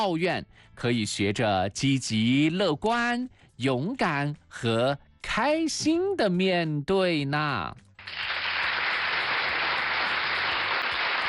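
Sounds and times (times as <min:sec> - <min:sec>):
speech: 0:00.0 - 0:08.3
crowd applause: 0:08.0 - 0:11.2.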